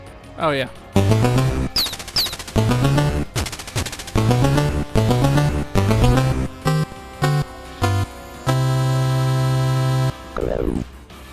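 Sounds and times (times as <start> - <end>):
speech: 0.4 - 1.5
tank arcade video game machine-gun fire: 1.0 - 6.8
long sustained electronic buzzing tone: 6.1 - 10.9.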